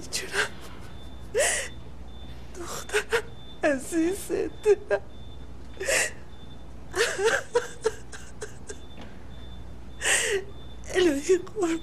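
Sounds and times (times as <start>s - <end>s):
woman sobbing at a hospital bedside beside a patient in a coma: 0.0s - 1.8s, 2.6s - 5.1s, 5.8s - 6.3s, 6.9s - 8.9s, 10.0s - 11.8s
speech: 3.7s - 5.1s.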